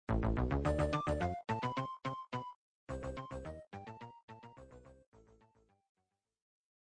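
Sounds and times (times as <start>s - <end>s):
in-game background music: 0.2s - 5.4s.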